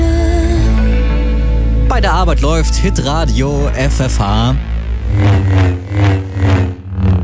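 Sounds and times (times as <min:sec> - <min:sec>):
Star Wars lightsaber hum sound effect: 0:00.0 - 0:07.2
speech: 0:02.0 - 0:06.2.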